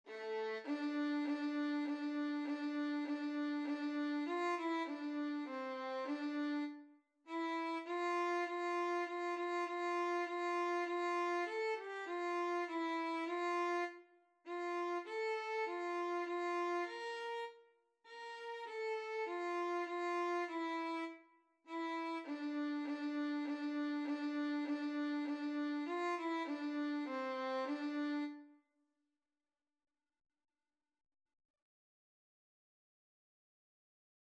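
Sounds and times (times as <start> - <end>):
easy violin piece in D minor: 0.0 - 28.5.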